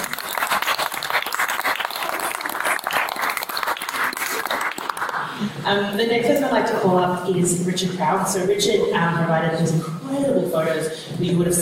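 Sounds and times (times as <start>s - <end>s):
audience applause: 0.0s - 5.5s
speech: 5.7s - 11.6s.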